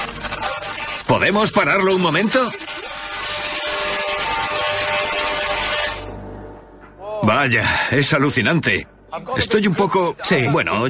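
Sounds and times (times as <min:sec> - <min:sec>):
high-voltage electrical discharge buzzing: 0:00.0 - 0:06.6
speech: 0:01.1 - 0:02.6, 0:07.2 - 0:10.8.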